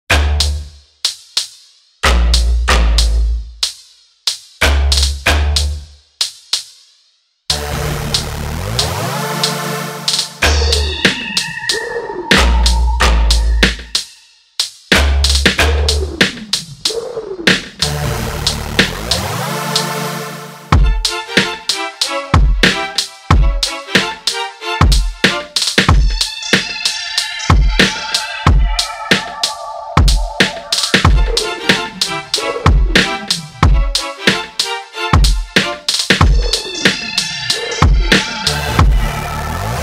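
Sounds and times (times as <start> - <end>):
rap battle beat: 0.1 - 20.0, 20.7 - 39.8.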